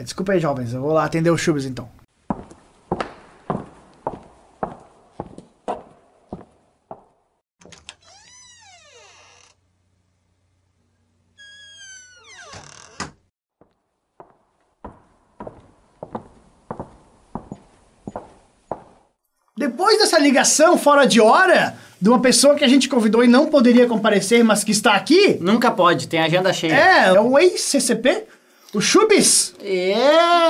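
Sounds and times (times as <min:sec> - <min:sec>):
speech: 0:00.0 - 0:02.0, 0:20.4 - 0:30.4
footsteps: 0:02.1 - 0:07.4, 0:13.6 - 0:19.2
door creaking and grinding open: 0:07.6 - 0:09.6, 0:11.3 - 0:13.3.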